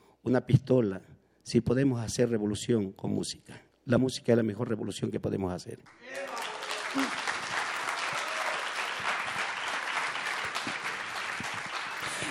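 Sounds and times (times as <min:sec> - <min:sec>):
speech: 0:00.2 - 0:07.3
audience applauding: 0:05.9 - 0:12.3.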